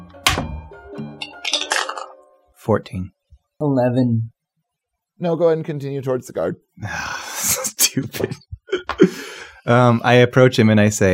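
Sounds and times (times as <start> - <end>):
dice rolling: 1.2 - 2.2
speech: 2.6 - 4.4, 5.2 - 7.2, 8.0 - 8.6, 9.6 - 11.1
laughter: 7.9 - 9.2.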